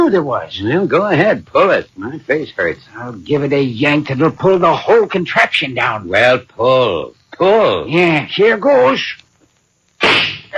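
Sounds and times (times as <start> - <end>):
speech: 0.1 - 9.2
gunshot sound effect: 10.0 - 10.5.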